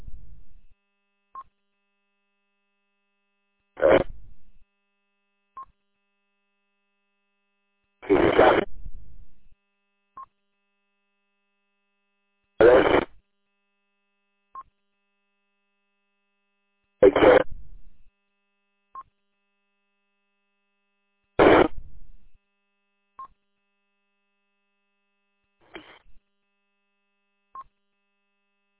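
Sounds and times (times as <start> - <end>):
ham radio static bursts: 3.8 - 4.4, 8.0 - 9.1, 12.6 - 13.2, 17.0 - 18.0, 21.4 - 22.3, 25.6 - 26.2.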